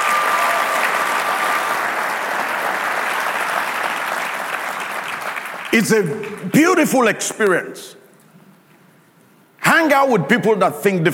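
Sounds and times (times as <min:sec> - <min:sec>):
large audience clapping: 0:00.0 - 0:06.8
speech: 0:05.7 - 0:08.0, 0:09.8 - 0:11.1.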